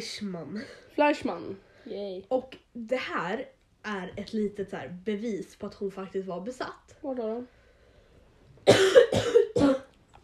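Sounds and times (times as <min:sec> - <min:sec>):
speech: 0:00.0 - 0:07.6
cough: 0:08.6 - 0:09.9.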